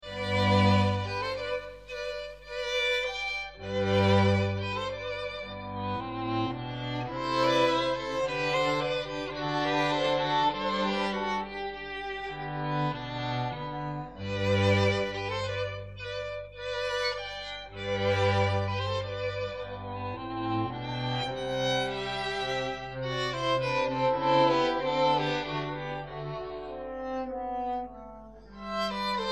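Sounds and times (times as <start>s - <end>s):
quartet playing andante in G major: 0.0s - 29.3s.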